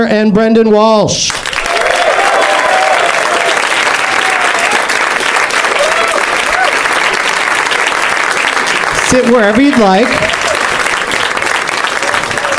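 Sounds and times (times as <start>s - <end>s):
speech: 0.0s - 1.3s, 9.1s - 10.2s
audience applause at a live comedy show: 1.3s - 12.5s
audience whooping: 1.6s - 7.3s, 10.2s - 12.5s.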